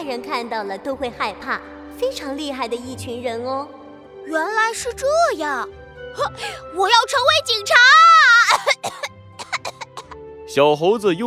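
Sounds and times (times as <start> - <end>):
speech: 0.0 - 9.0, 10.5 - 11.2
person coughing after choking on saliva: 8.5 - 10.2.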